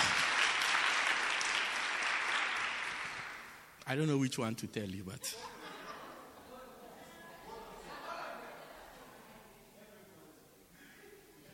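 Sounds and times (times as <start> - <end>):
audience clapping hands: 0.0 - 3.7
speech: 3.9 - 5.6
laughter: 5.2 - 9.4.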